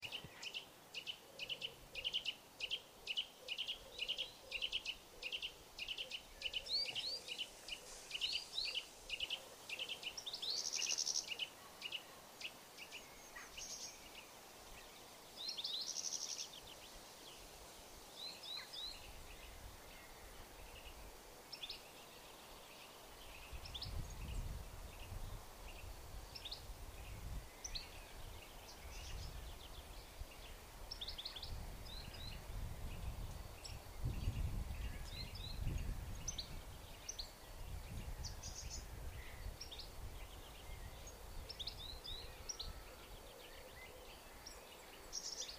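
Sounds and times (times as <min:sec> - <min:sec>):
birdsong in the churchyard: 0:00.0 - 0:17.5, 0:18.2 - 0:45.5.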